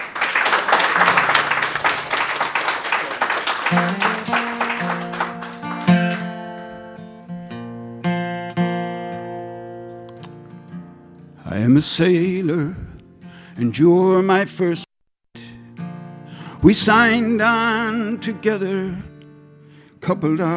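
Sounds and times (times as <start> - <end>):
audience applause: 0.0 - 6.3
instrumental music with clear sustained notes: 1.0 - 11.4
speech: 11.8 - 12.9, 13.6 - 14.8, 16.6 - 19.1, 20.1 - 20.5.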